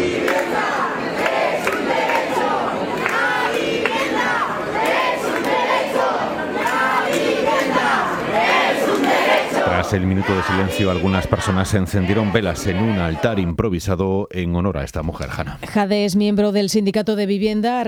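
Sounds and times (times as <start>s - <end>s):
protest crowd shouting in anger: 0.0s - 13.5s
speech: 9.9s - 17.8s.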